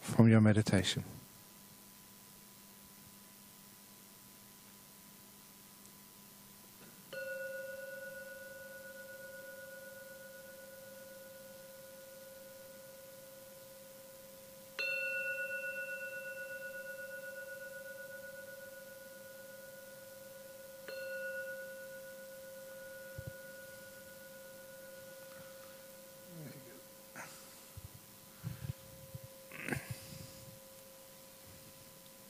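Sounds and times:
speech: 0:00.2 - 0:01.2
meditation gong ringing: 0:07.0 - 0:31.1.

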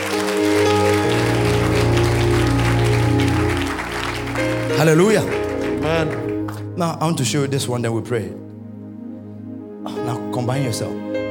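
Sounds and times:
audience clapping: 0:00.0 - 0:07.2
sustained low organ-like chords: 0:00.0 - 0:11.2
speech: 0:04.8 - 0:08.5, 0:10.4 - 0:11.1.

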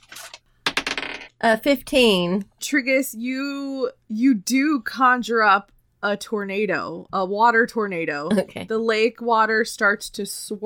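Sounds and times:
dice clattering onto a hard surface: 0:00.0 - 0:01.3
speech: 0:01.4 - 0:10.6.

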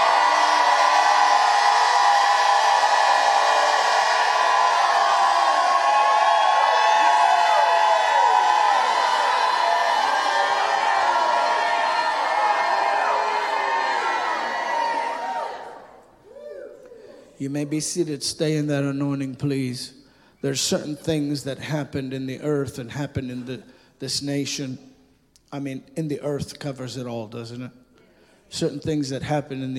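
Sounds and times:
large audience shouting and cheering: 0:00.0 - 0:17.8
speech: 0:17.4 - 0:24.9, 0:25.5 - 0:27.8, 0:28.5 - 0:29.7.

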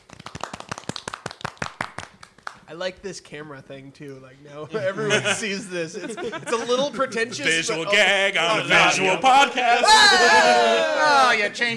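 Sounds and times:
golf clap: 0:00.0 - 0:02.7
speech: 0:02.7 - 0:11.7
laughter: 0:04.6 - 0:11.7.

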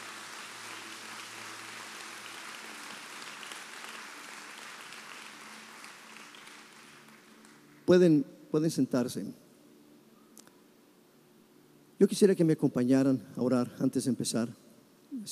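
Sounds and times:
audience applauding: 0:00.0 - 0:07.9
speech: 0:07.9 - 0:09.4, 0:12.0 - 0:15.3.

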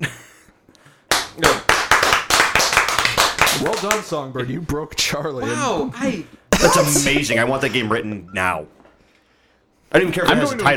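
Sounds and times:
hands clapping: 0:01.1 - 0:04.1
speech: 0:01.4 - 0:01.6, 0:03.8 - 0:08.8, 0:10.0 - 0:10.7
laughter: 0:06.6 - 0:07.8.

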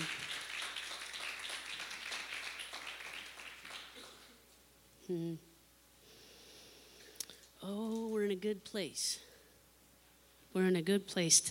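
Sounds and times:
audience hand clapping: 0:00.0 - 0:04.4
speech: 0:05.1 - 0:05.5, 0:07.6 - 0:09.3, 0:10.6 - 0:11.4.

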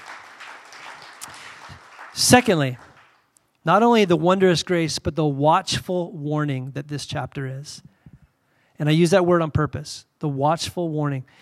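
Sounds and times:
crowd applauding: 0:00.0 - 0:03.2
speech: 0:02.2 - 0:02.8, 0:03.6 - 0:07.9, 0:08.8 - 0:11.4.

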